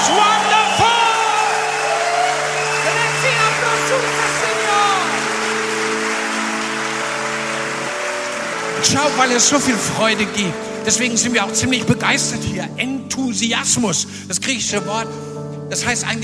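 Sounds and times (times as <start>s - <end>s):
whoops: 0.0s - 3.9s
crowd clapping and cheering: 0.0s - 12.3s
sustained keyboard chords: 0.0s - 16.2s
speech: 8.9s - 16.2s.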